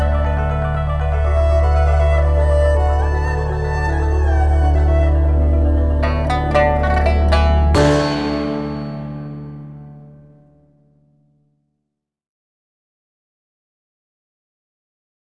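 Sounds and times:
Asian tune: 0.0 - 10.4.

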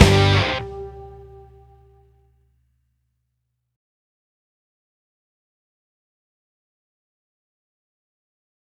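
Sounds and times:
rock remix: 0.0 - 1.3.

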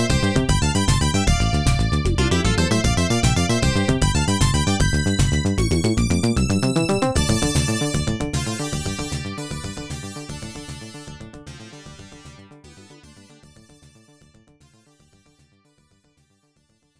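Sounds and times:
stage background music: 0.0 - 13.6.

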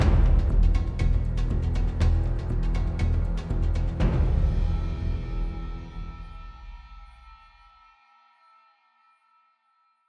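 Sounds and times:
low intensity music end tag: 0.0 - 7.0.

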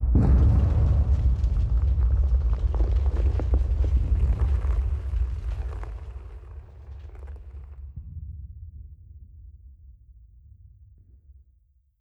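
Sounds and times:
dynamite explosion: 0.0 - 8.3.

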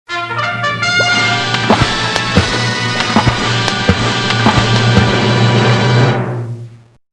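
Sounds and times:
fanfare: 0.1 - 5.4.

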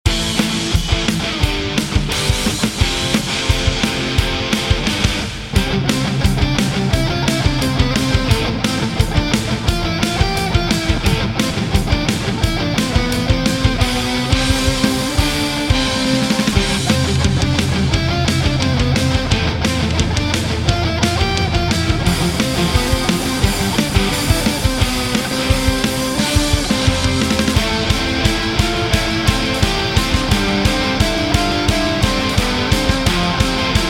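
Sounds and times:
battle music: 0.1 - 33.8.

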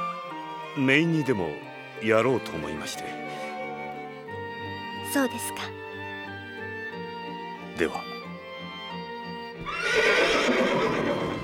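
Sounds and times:
speech: 0.8 - 3.4, 5.1 - 5.8, 7.8 - 8.0
horse neighing: 9.6 - 11.4.

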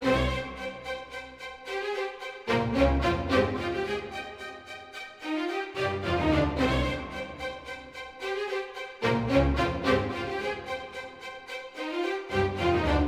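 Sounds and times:
string instruments: 0.0 - 13.0.

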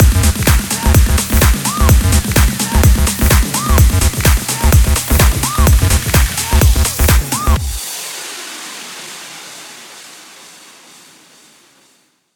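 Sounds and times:
sci-fi music outro: 0.0 - 7.9.

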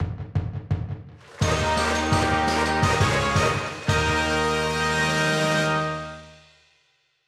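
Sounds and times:
brass band playing: 1.3 - 6.5.

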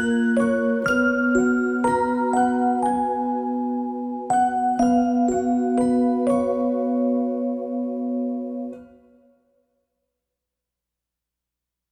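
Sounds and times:
music box melody: 0.0 - 7.8.

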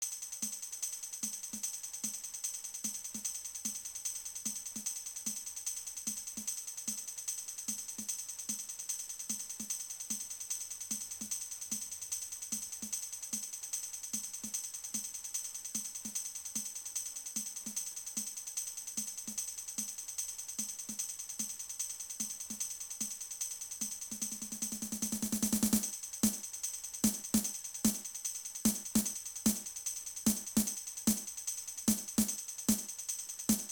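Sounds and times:
boss appearance music: 25.2 - 26.4, 27.0 - 28.0, 28.7 - 29.7, 30.3 - 31.3, 31.9 - 32.9, 33.5 - 33.7.

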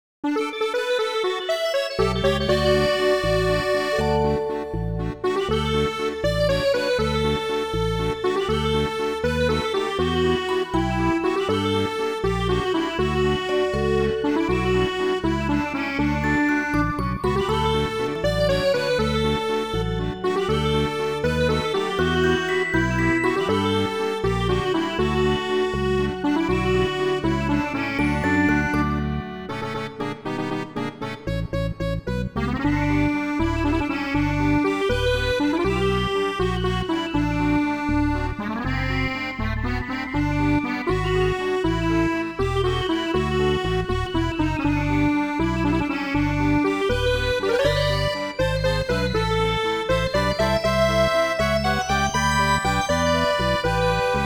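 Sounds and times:
inquisitive waltz: 0.3 - 54.2.

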